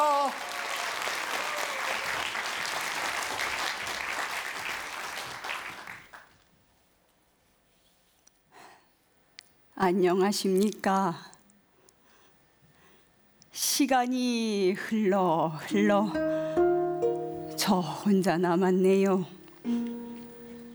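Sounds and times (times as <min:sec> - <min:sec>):
audience applause: 0:00.0 - 0:06.3
speech: 0:09.8 - 0:11.3, 0:13.8 - 0:16.4, 0:17.7 - 0:19.9.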